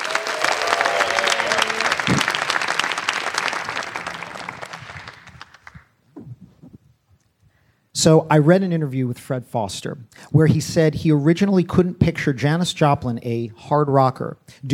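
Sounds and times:
audience applause welcoming a speaker: 0:00.0 - 0:06.0
speech: 0:08.0 - 0:14.7.

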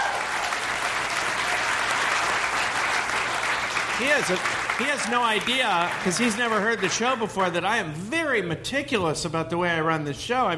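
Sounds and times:
audience applause: 0:00.0 - 0:07.5
speech: 0:04.0 - 0:10.5.

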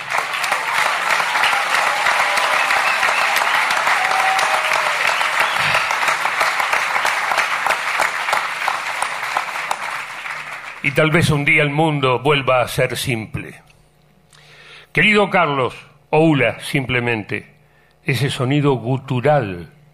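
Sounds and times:
loud applause: 0:00.0 - 0:11.0
speech: 0:11.0 - 0:13.7, 0:15.0 - 0:19.8.

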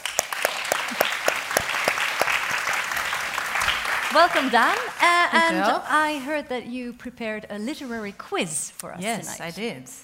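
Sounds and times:
audience applause: 0:00.0 - 0:05.8
speech: 0:04.1 - 0:10.0.

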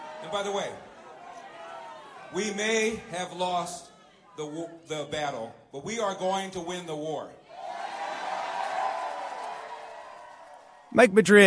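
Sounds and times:
crowd booing: 0:00.0 - 0:04.5, 0:07.4 - 0:11.0
speech: 0:00.3 - 0:00.9, 0:02.3 - 0:07.4, 0:11.0 - 0:11.4.

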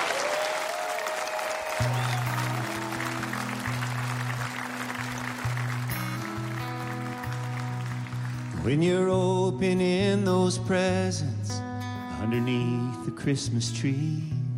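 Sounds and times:
audience applause welcoming a country singer: 0:00.0 - 0:08.7
band music: 0:01.6 - 0:10.4
speech: 0:08.6 - 0:11.4, 0:12.3 - 0:14.4.

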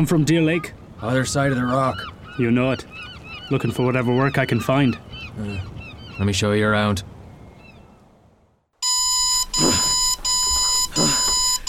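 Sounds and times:
speech: 0:00.0 - 0:07.1
alarm clock blaring electronic tone: 0:08.8 - 0:11.6.

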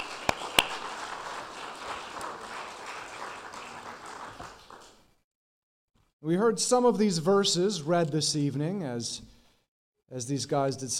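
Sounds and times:
audience applause: 0:00.0 - 0:04.8
speech: 0:06.2 - 0:09.3, 0:10.1 - 0:10.9.

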